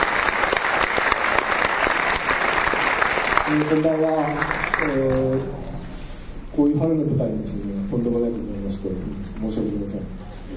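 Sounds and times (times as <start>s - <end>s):
audience applause: 0.0s - 5.6s
speech: 3.5s - 5.7s, 6.6s - 10.5s.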